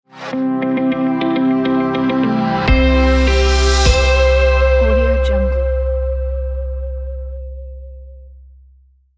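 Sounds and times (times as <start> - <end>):
guitar logo reveal: 0.1 - 7.2.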